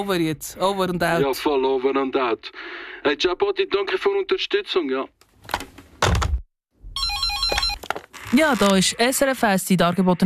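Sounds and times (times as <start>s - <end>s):
speech: 0.0s - 5.7s, 8.3s - 10.2s
thud: 6.0s - 6.4s
telephone electronic ringtone: 7.0s - 7.9s.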